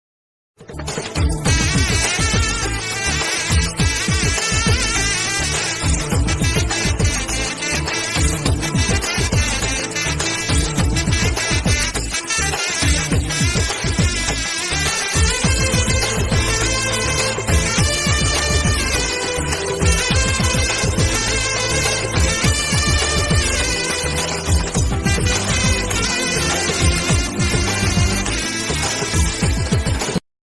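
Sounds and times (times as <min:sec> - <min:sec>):
flute background music ringtone: 0:01.2 - 0:30.2.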